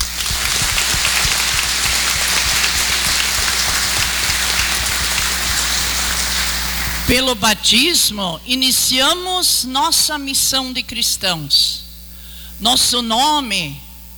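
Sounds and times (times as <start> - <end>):
audience applause: 0.0 - 7.3
speech: 7.1 - 11.8, 12.6 - 13.8.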